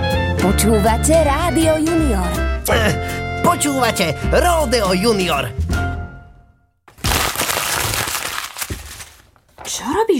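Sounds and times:
speech: 0.4 - 5.6, 9.8 - 10.1
old script paper crumpling: 6.9 - 9.7.

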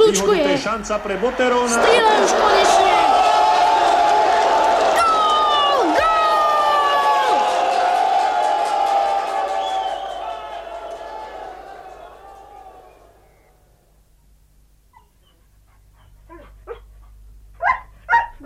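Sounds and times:
crowd noise: 0.0 - 14.1
speech: 0.1 - 3.2
dog barking: 17.6 - 18.4.

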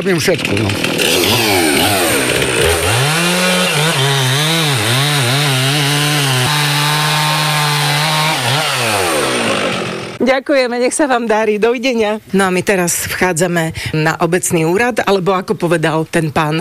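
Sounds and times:
speech: 0.0 - 2.5, 10.2 - 16.5
chainsaw running: 0.0 - 10.2.

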